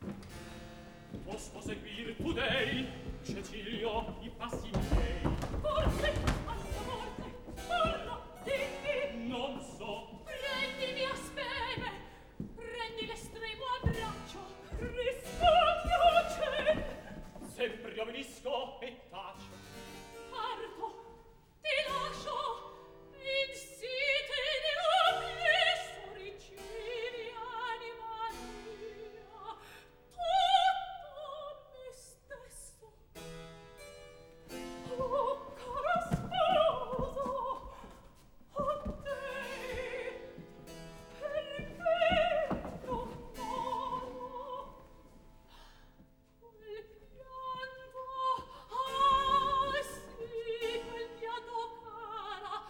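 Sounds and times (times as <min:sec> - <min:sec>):
operatic recitative from a third act: 0:01.1 - 0:33.1, 0:34.7 - 0:45.7, 0:46.4 - 0:52.6.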